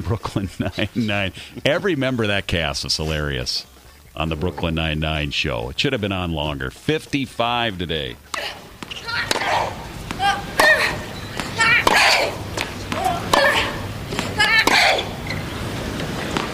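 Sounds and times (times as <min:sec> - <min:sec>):
tennis players grunting: 0:00.0 - 0:04.8, 0:07.4 - 0:16.5
speech: 0:00.1 - 0:09.8
racket-on-ball cracks: 0:08.2 - 0:16.5.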